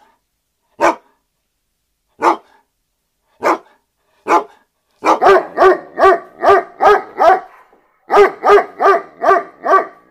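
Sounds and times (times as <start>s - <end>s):
German Shepherd barking: 0.8s - 1.2s, 2.2s - 2.6s, 3.4s - 10.0s.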